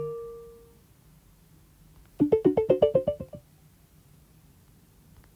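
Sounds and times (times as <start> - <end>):
iOS 17 notification tones: 2.2 - 3.4.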